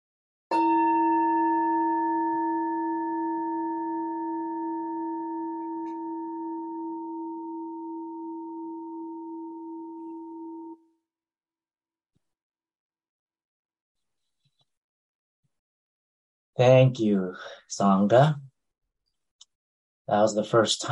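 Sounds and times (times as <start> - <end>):
meditation bell ringing: 0.5 - 10.8
speech: 16.6 - 18.5, 20.1 - 20.9.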